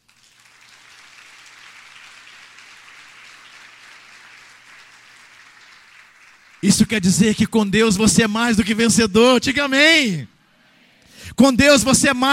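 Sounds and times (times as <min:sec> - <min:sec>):
audience applause: 0:00.0 - 0:07.4
speech: 0:06.6 - 0:10.3, 0:11.4 - 0:12.3.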